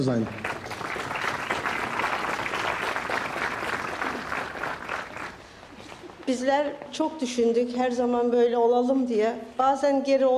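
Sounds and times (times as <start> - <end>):
speech: 0.0 - 0.5, 6.3 - 10.3
audience applause at a public gathering: 0.0 - 5.5.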